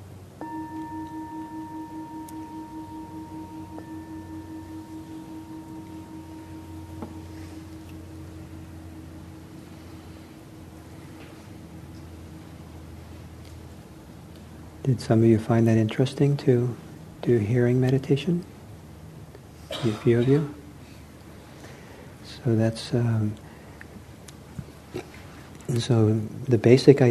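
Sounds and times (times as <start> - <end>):
meditation ending bell ringing: 0.4 - 10.2
speech: 14.9 - 18.5, 19.8 - 20.6, 22.4 - 23.4, 25.8 - 27.0.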